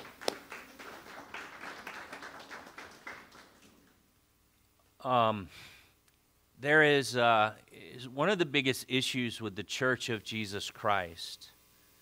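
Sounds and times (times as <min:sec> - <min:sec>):
church audience clapping hands: 0:00.0 - 0:04.0
speech: 0:05.0 - 0:05.7, 0:06.6 - 0:11.6.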